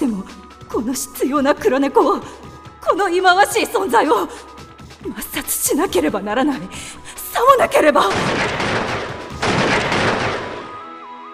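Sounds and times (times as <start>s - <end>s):
speech: 0.2s - 8.6s
pistol firing: 8.1s - 10.9s.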